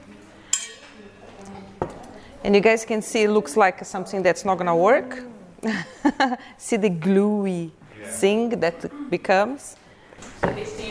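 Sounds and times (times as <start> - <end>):
utensil clinking against a pan: 0.5 - 1.2
speech: 2.4 - 9.8.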